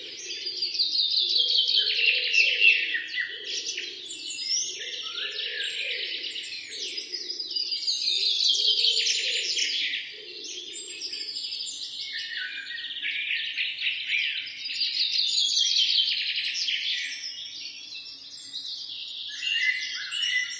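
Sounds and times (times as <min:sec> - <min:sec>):
birds calling together with high chirps, trills and twitters: 0:00.0 - 0:20.5.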